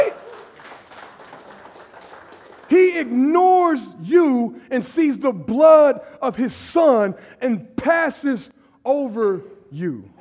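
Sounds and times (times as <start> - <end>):
audience clapping: 0.0 - 3.1
speech: 2.9 - 10.1.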